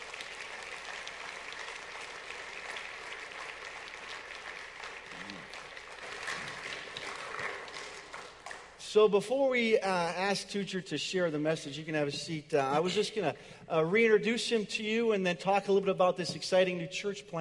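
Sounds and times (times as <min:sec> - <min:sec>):
audience applauding a speaker at a church service: 0:00.0 - 0:08.8
speech: 0:08.9 - 0:17.4.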